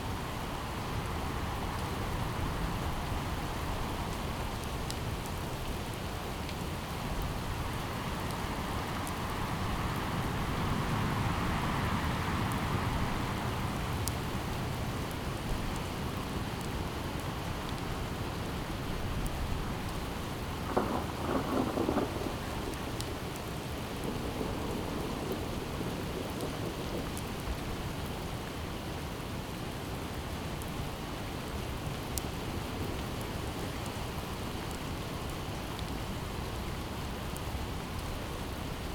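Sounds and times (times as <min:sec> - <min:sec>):
outdoor rain: 0:00.0 - 0:38.9
outdoor wind: 0:00.0 - 0:38.9
thunder: 0:20.7 - 0:23.0.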